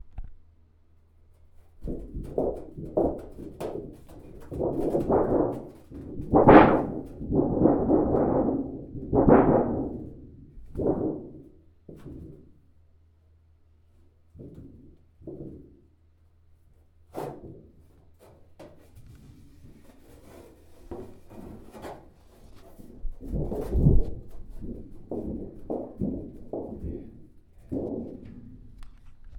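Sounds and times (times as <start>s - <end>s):
sheet metal shaking: 1.6s - 12.5s, 17.1s - 29.3s.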